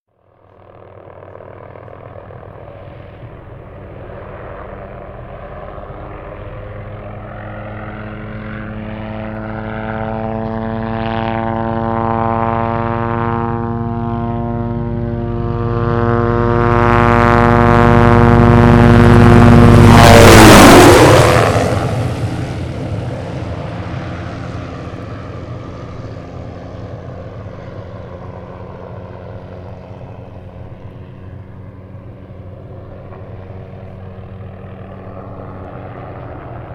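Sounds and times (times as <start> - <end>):
helicopter: 0.1 - 36.7.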